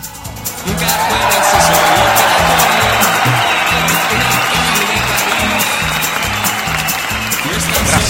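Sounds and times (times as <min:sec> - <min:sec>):
audience applause: 0:00.4 - 0:08.0
laughter: 0:00.7 - 0:08.0.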